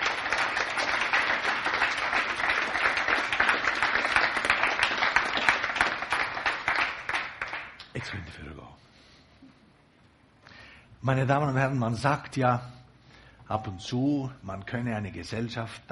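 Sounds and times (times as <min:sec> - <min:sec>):
audience applause: 0:00.0 - 0:08.2
speech: 0:11.0 - 0:12.8, 0:13.5 - 0:15.9.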